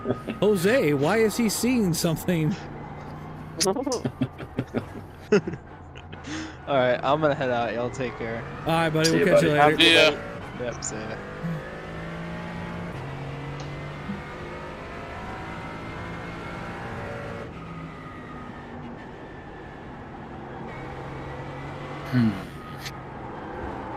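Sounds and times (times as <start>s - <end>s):
laughter: 0.0s - 1.6s, 3.6s - 6.6s, 8.7s - 10.2s
speech: 0.0s - 2.7s, 3.6s - 4.2s, 5.3s - 5.7s, 6.3s - 11.6s, 22.2s - 22.4s
car engine revving while driving: 0.0s - 23.9s.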